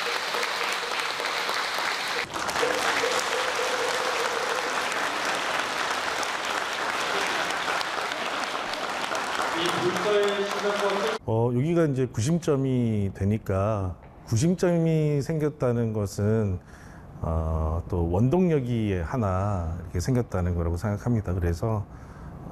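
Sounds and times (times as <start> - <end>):
big round of applause: 0.0 - 11.2
speech: 11.3 - 22.5.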